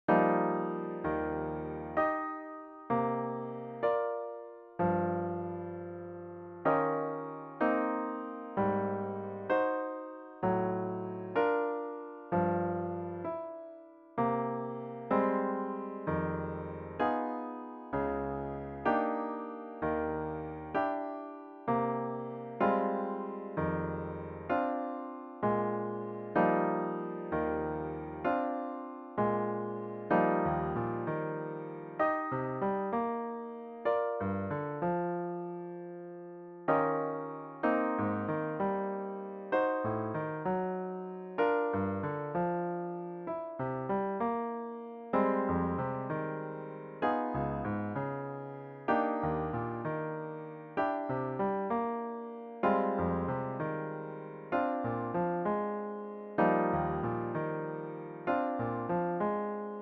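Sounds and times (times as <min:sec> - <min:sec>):
solo piano: 0:00.0 - 0:59.7.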